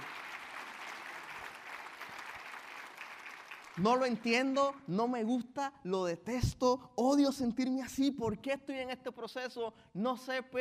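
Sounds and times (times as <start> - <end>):
audience applause: 0.0 - 4.5
speech: 3.8 - 10.5.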